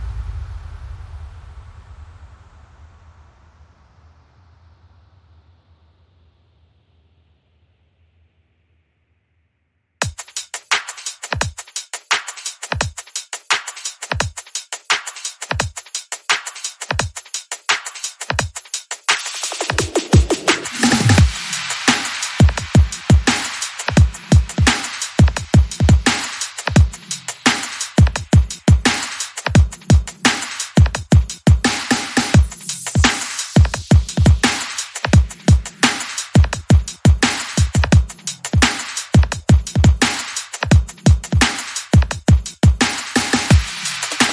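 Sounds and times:
drums: 0:10.0 - 0:44.3.

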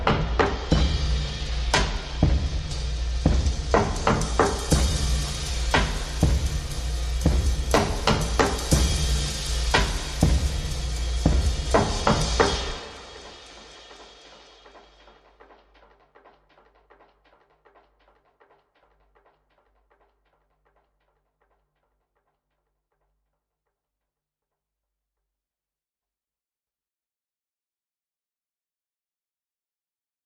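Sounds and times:
drums: 0:00.0 - 0:20.8.

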